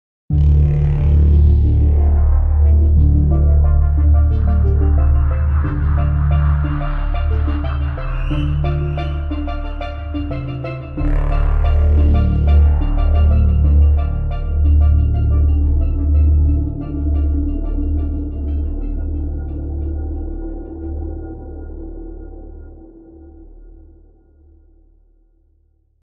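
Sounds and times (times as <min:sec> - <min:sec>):
map theme music: 0:00.3 - 0:20.9.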